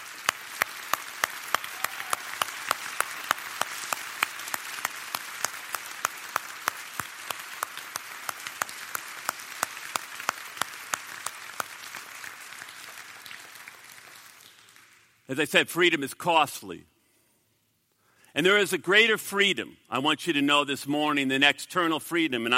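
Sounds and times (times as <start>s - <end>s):
large audience applauding military members: 0.0s - 15.1s
speech: 15.3s - 16.9s, 18.4s - 22.5s.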